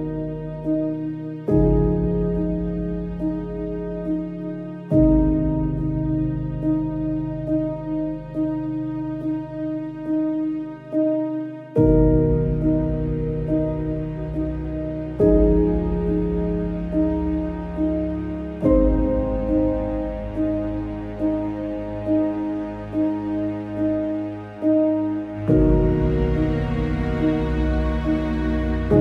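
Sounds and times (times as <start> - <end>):
calm piano music: 0.0 - 28.9.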